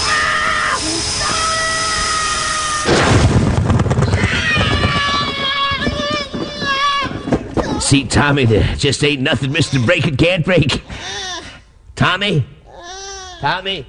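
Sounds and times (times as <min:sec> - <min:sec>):
steady mechanical whine with high ringing tones: 0:00.0 - 0:06.4
loud explosion: 0:02.6 - 0:06.0
speech: 0:07.9 - 0:11.2, 0:12.0 - 0:12.6, 0:13.4 - 0:13.8.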